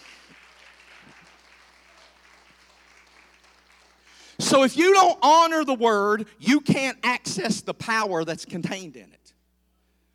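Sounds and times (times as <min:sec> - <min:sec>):
audience clapping hands in praise: 0:00.0 - 0:04.4
speech: 0:04.5 - 0:09.2.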